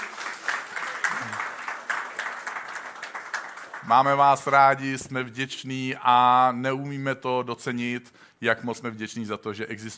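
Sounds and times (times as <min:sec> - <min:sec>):
audience applause: 0:00.0 - 0:03.9
speech: 0:03.9 - 0:09.9.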